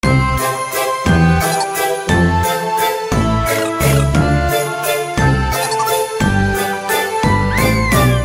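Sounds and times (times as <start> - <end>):
New Year background music: 0.0 - 8.2.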